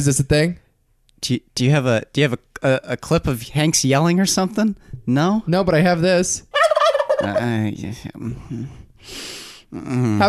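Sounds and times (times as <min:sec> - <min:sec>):
speech: 0:00.0 - 0:00.6, 0:01.2 - 0:06.5, 0:07.2 - 0:10.2
turkey gobbling: 0:06.5 - 0:07.6.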